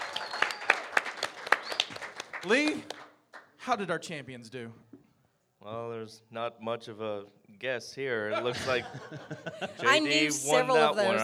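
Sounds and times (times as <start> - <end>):
audience applause: 0.0 - 3.4
speech: 2.4 - 3.0, 3.6 - 4.9, 5.6 - 11.2
laughter: 8.3 - 10.5.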